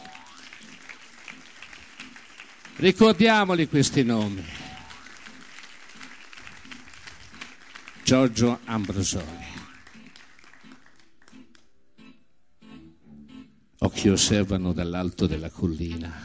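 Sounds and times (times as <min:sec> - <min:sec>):
audience applause: 0:00.0 - 0:11.5
speech: 0:02.8 - 0:04.6, 0:08.1 - 0:09.6, 0:14.0 - 0:16.2.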